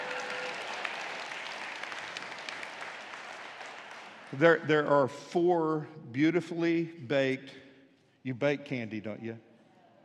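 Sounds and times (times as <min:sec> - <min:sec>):
audience applause: 0:00.0 - 0:04.7
speech: 0:04.3 - 0:07.6, 0:08.2 - 0:09.5.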